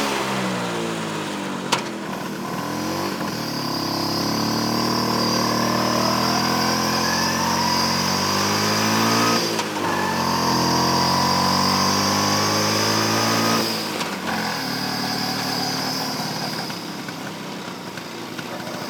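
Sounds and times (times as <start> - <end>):
scooter riding recorded with onboard microphone: 0.0 - 18.8.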